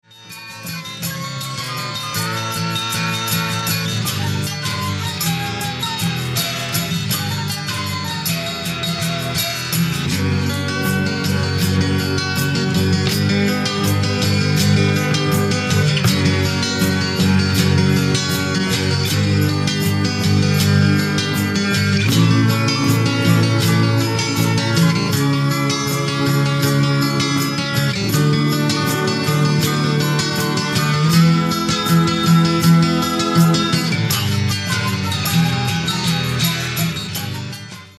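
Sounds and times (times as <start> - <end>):
bass players playing: 1.1 - 37.0.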